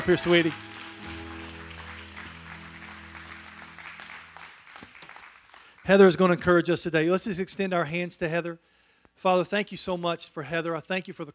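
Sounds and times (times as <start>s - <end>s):
speech: 0.0s - 0.8s, 5.9s - 11.3s
audience hand clapping: 0.0s - 6.4s.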